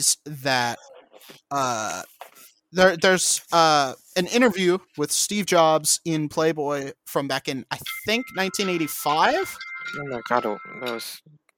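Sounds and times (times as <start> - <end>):
speech: 0.0 - 0.9, 1.5 - 2.1, 2.7 - 11.4
phone alarm ringing: 8.2 - 11.2.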